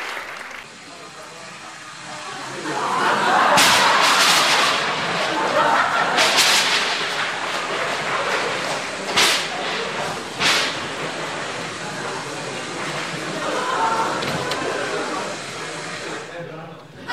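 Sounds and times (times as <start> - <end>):
laughter: 1.9 - 10.4, 11.0 - 17.1
thunder from a storm: 3.4 - 12.1.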